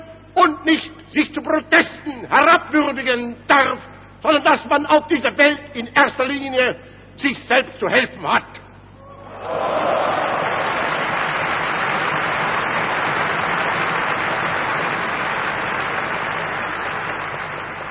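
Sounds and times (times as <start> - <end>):
speech: 0.4 - 8.6
audience applause during a speech: 9.3 - 17.8.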